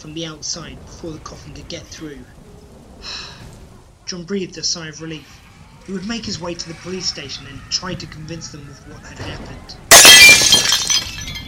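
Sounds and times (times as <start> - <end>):
speech: 0.0 - 2.4, 3.0 - 3.2, 4.1 - 10.0
window glass shattering: 9.9 - 11.4.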